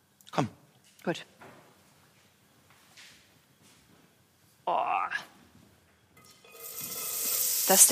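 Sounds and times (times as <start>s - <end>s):
speech: 0.4s - 1.4s, 7.7s - 7.9s
celery onions and garlic sizzling in oil in a pot: 6.4s - 7.9s.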